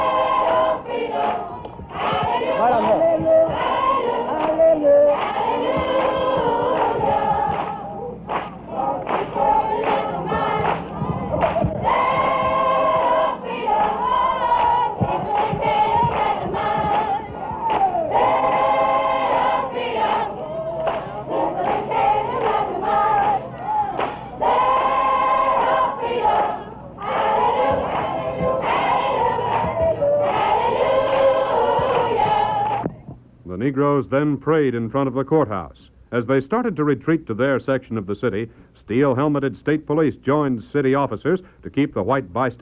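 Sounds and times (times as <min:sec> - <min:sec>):
demonstrators clapping: 0:00.0 - 0:33.0
demonstrators singing: 0:00.0 - 0:33.1
speech: 0:34.1 - 0:42.5.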